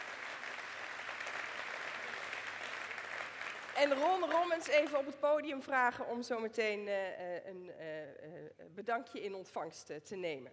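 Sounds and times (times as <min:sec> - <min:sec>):
large audience applause for a party branch: 0:00.0 - 0:04.5
speech: 0:03.8 - 0:10.5.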